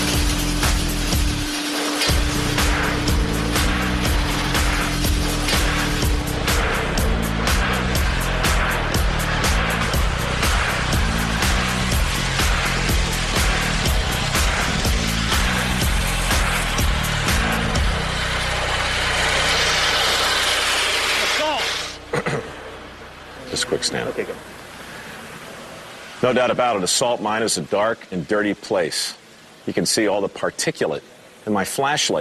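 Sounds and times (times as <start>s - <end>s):
auger drill running in salt mine: 0.0s - 22.0s
speech: 23.8s - 24.5s, 26.2s - 32.1s.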